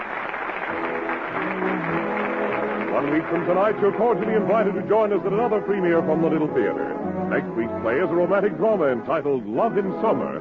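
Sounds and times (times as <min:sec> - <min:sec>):
audience ovation applause: 0:00.0 - 0:05.6
speech: 0:03.0 - 0:10.4.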